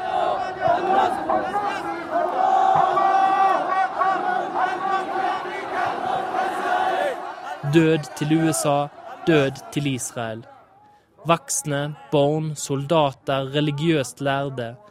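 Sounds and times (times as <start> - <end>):
crowd chanting slogans through megaphone loudspeakers: 0.0 - 12.6
speech: 7.7 - 10.5, 11.2 - 14.8.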